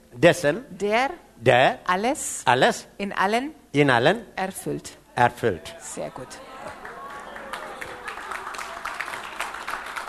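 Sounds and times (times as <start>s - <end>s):
speech: 0.2s - 6.8s
crowd audience clapping hands: 6.5s - 10.0s.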